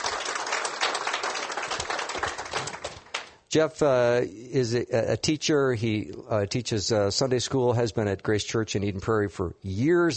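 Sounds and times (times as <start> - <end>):
crowd clapping: 0.0 - 3.4
speech: 3.5 - 10.1.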